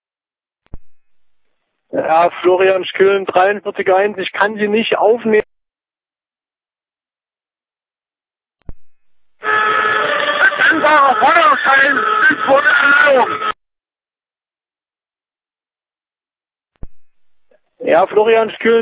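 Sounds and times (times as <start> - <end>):
speech: 2.1 - 5.6, 17.9 - 18.8
loud horn: 9.4 - 13.6.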